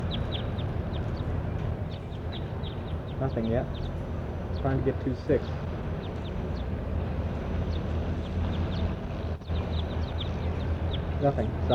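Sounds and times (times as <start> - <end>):
bird chirping: 0.0 - 11.7
low rumbling noise: 0.0 - 11.7
speech: 3.2 - 4.0, 4.6 - 5.8, 11.2 - 11.7.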